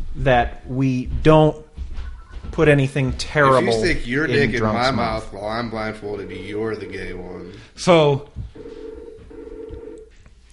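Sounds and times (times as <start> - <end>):
speech: 0.2 - 1.7, 2.6 - 8.8
telephone ringing for an incoming call: 6.0 - 7.4, 8.6 - 10.1.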